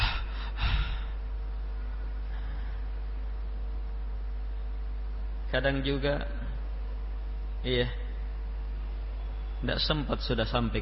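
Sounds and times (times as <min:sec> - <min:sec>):
person imitating being out of breath: 0:00.0 - 0:01.2
steady low hum of noise: 0:00.0 - 0:10.8
speech: 0:05.5 - 0:06.4, 0:07.6 - 0:08.0, 0:09.6 - 0:10.8.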